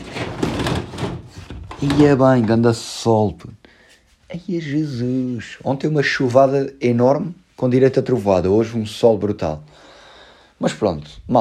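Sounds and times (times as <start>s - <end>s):
window roller shutter being opened: 0.0s - 2.2s
speech: 1.8s - 3.6s, 4.3s - 9.8s, 10.6s - 11.4s.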